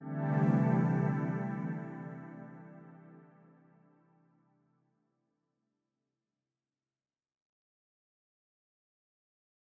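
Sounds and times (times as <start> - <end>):
intro synth pad: 0.0 - 3.9.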